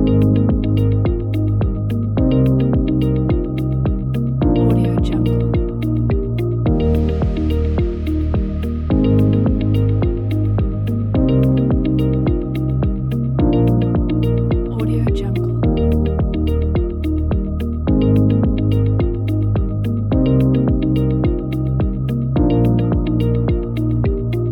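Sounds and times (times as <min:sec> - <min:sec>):
inspiring corporate music loop: 0:00.0 - 0:24.5.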